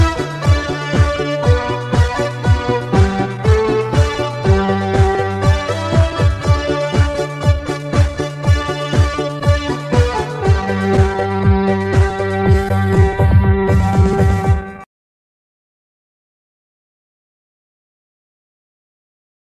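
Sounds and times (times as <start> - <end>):
music beat: 0.0 - 14.9.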